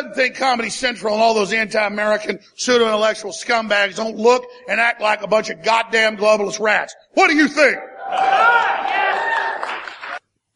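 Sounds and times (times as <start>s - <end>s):
speech: 0.0s - 9.0s
small crowd cheering: 7.8s - 10.2s.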